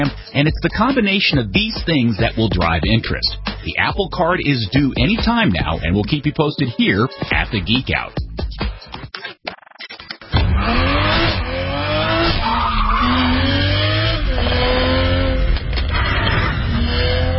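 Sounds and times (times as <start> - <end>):
speech: 0.0 - 8.7
Toyota Supra sports car engine roar: 10.3 - 17.3
Toyota Supra sports car tires squealing: 10.4 - 17.3.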